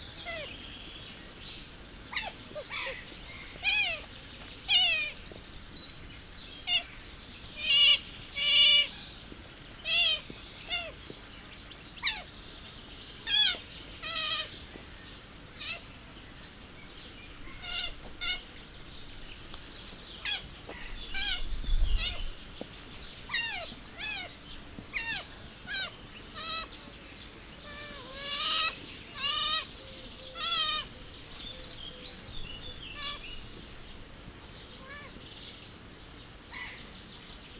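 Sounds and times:
Asian small-clawed otter calling: 0.0s - 0.7s, 1.6s - 5.2s, 6.6s - 9.1s, 9.8s - 11.1s, 12.0s - 12.3s, 13.2s - 14.6s, 15.6s - 15.9s, 17.4s - 18.5s, 20.2s - 22.5s, 23.3s - 26.7s, 27.6s - 31.0s, 32.7s - 33.4s.

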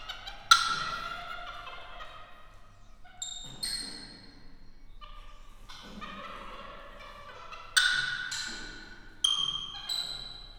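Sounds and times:
capuchin monkey chirping intensely in Debrecen zoo: 0.0s - 2.0s, 7.6s - 10.2s.

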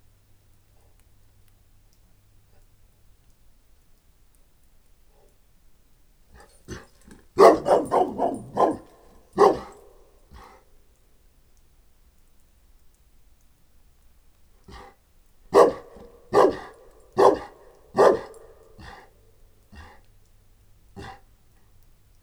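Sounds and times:
Saint Bernard and Moscow Watchdog mix dog at a farmyard: 6.3s - 10.6s, 14.7s - 19.1s, 19.7s - 20.1s, 21.0s - 21.7s.

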